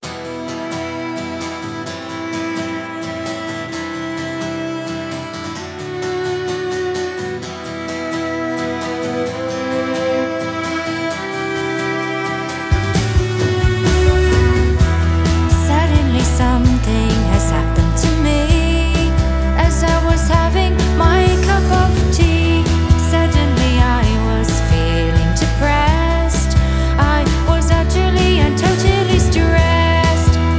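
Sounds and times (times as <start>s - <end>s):
acoustic music: 0.0s - 30.5s.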